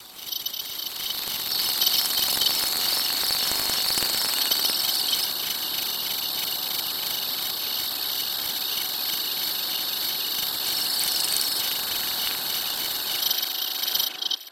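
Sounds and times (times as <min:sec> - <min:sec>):
insect: 0:00.0 - 0:14.4.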